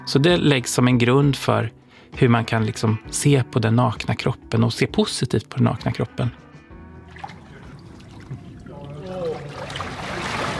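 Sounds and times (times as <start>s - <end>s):
speech: 0.0s - 6.4s
water splashing as someone wades in: 7.0s - 10.5s.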